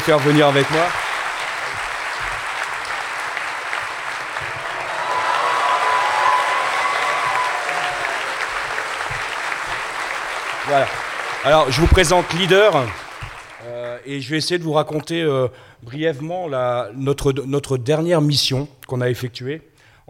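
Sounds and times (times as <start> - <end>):
speech: 0.0 - 1.0, 10.7 - 13.0, 14.0 - 19.7
audience clapping: 0.0 - 14.2
faint whistle or cheer: 4.4 - 9.2.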